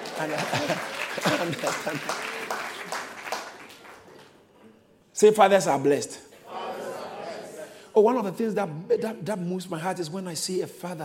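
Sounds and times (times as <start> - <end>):
laughter: 0.0 - 3.1
audience clapping: 0.0 - 4.5
speech: 0.2 - 2.4, 5.2 - 6.2, 8.0 - 11.0.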